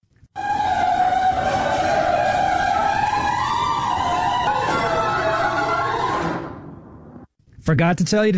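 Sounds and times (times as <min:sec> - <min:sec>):
old garage door grinding along its rollers: 0:00.6 - 0:06.7
speech: 0:07.7 - 0:08.3.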